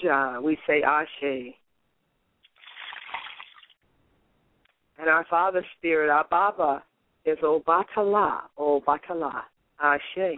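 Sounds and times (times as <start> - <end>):
speech: 0.0 - 1.6, 5.0 - 10.3
liquid libation pouring: 2.4 - 3.8.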